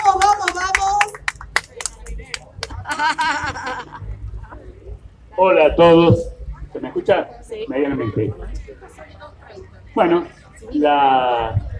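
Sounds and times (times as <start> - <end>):
audience applause: 0.0 - 3.6
laughter: 1.6 - 4.2
speech: 3.0 - 3.9, 5.4 - 6.3, 7.0 - 9.2, 10.0 - 11.6.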